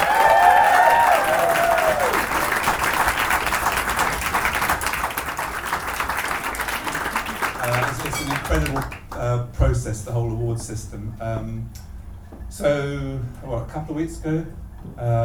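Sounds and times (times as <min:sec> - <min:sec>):
whistles and cheers: 0:00.0 - 0:08.8
crowd applauding: 0:00.0 - 0:09.4
speech: 0:09.9 - 0:15.2.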